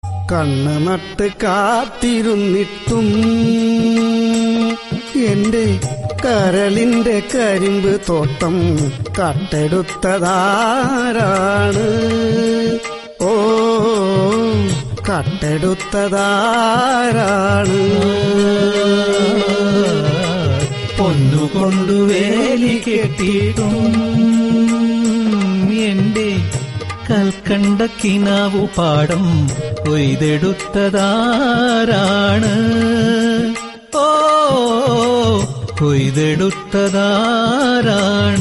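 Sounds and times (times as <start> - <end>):
love failure song: 0.3 - 38.3.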